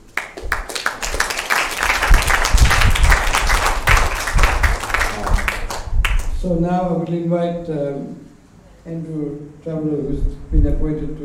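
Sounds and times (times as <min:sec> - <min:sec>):
round of applause: 0:00.0 - 0:06.4
speech: 0:06.4 - 0:11.2.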